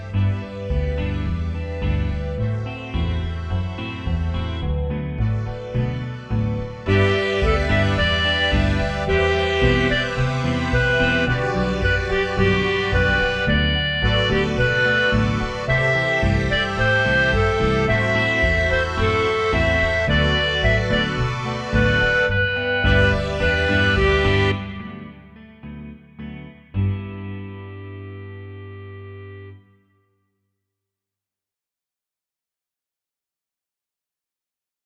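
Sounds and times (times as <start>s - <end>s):
bossa nova music: 0.0s - 25.2s.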